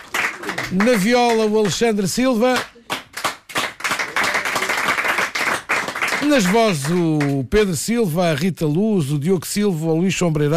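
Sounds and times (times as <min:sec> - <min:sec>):
audience applause: 0:00.0 - 0:01.8, 0:02.5 - 0:07.3
speech: 0:00.7 - 0:02.7, 0:06.3 - 0:10.5.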